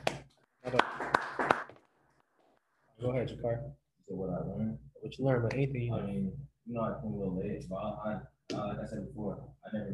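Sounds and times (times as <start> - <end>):
group clapping: 0.0 - 2.0
speech: 0.7 - 1.0, 3.1 - 9.9.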